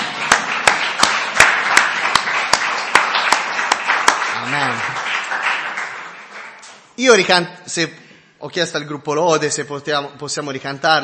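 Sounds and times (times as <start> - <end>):
audience applause: 0.0 - 6.7
speech: 4.5 - 4.9, 7.0 - 11.0.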